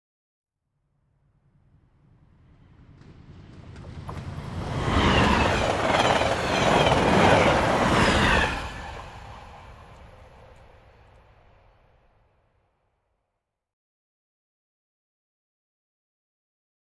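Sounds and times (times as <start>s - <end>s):
trains: 1.3s - 12.3s.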